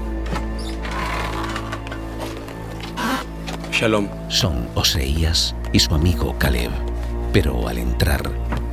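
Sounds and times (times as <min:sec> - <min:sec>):
door being opened: 0:00.1 - 0:03.7
speech: 0:03.8 - 0:08.6.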